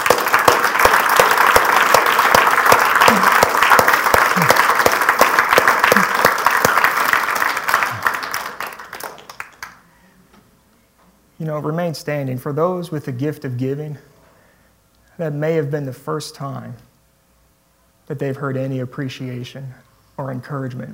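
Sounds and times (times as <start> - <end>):
audience applause: 0.0 - 9.8
speech: 11.6 - 14.1, 15.2 - 16.9, 18.1 - 20.9.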